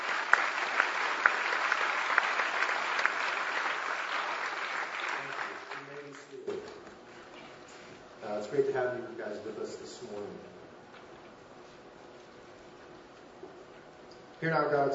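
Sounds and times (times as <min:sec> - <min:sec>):
church congregation applause welcoming new campus ministers: 0:00.0 - 0:06.5
speech: 0:08.5 - 0:10.6, 0:14.4 - 0:14.9.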